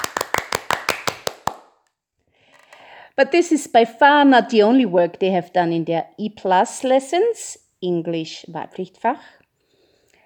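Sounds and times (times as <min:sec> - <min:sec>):
short burst of applause: 0:00.0 - 0:01.8
speech: 0:03.2 - 0:09.4.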